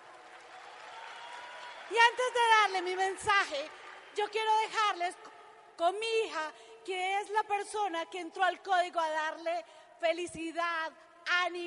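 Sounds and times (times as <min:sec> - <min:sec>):
audience applause: 0:00.0 - 0:04.2
speech: 0:01.9 - 0:11.6.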